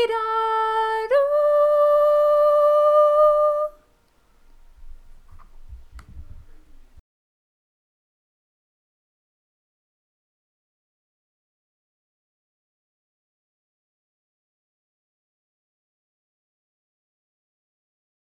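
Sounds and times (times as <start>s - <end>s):
person singing: 0.0s - 3.8s.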